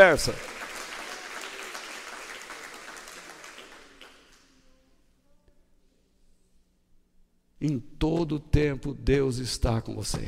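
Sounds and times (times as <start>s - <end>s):
speech: 0.0s - 0.5s, 7.6s - 10.2s
audience applause: 0.0s - 4.4s.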